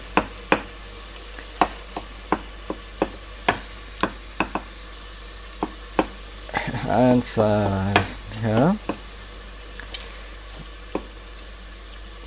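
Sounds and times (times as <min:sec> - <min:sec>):
chopping tomatoes into cubes on board: 0:01.6 - 0:04.7, 0:05.6 - 0:06.2
speech: 0:06.9 - 0:08.8.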